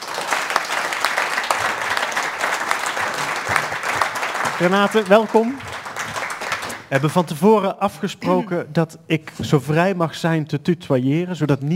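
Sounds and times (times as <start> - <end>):
audience applause: 0.0 - 6.9
speech: 4.6 - 5.7, 6.9 - 11.7.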